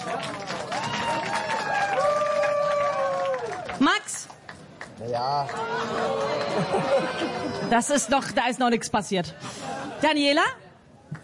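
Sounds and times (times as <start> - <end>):
audience applause: 0.0 - 7.6
speech: 5.0 - 10.6
laughter: 5.6 - 8.3.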